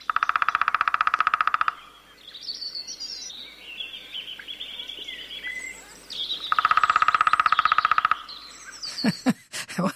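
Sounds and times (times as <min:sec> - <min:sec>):
lesser spotted woodpecker drumming: 0:00.0 - 0:02.0, 0:06.3 - 0:09.2
other birds singing: 0:00.0 - 0:09.5.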